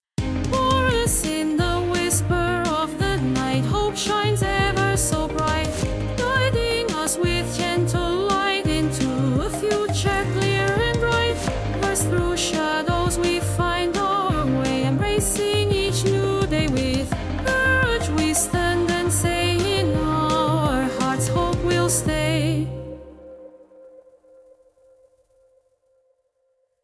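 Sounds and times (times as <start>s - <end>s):
text to song generated song: 0.2s - 25.0s.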